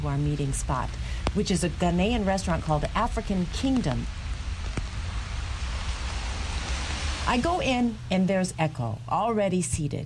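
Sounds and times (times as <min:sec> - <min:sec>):
speech: 0:00.0 - 0:04.2, 0:07.3 - 0:10.0
steady rain on a cold wet day: 0:00.0 - 0:09.1.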